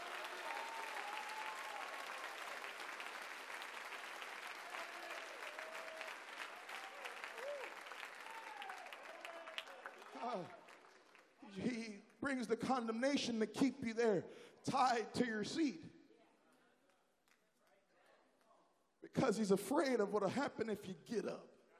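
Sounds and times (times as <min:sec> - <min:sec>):
church congregation clapping hands: 0:00.0 - 0:12.5
speech: 0:10.2 - 0:10.6, 0:11.5 - 0:15.9, 0:19.4 - 0:21.6.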